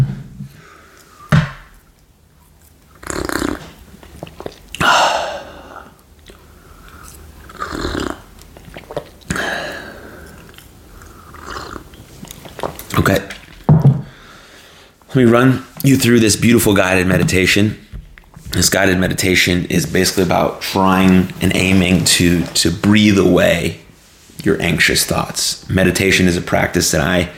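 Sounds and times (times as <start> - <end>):
person taking a quick sip of a drink: 2.8 - 12.9
speech: 13.0 - 13.4, 15.1 - 17.9, 18.6 - 23.8, 24.4 - 27.3.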